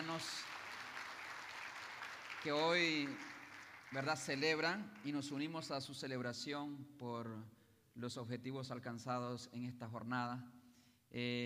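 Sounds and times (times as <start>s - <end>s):
audience applause: 0.0s - 5.3s
speech: 0.1s - 0.6s, 2.4s - 3.3s, 3.9s - 11.4s.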